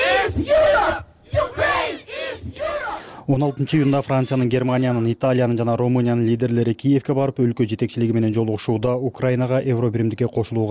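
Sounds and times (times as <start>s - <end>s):
crowd of Ukraine supporters shouting at a street rally: 0.0s - 4.5s
speech: 3.3s - 10.6s.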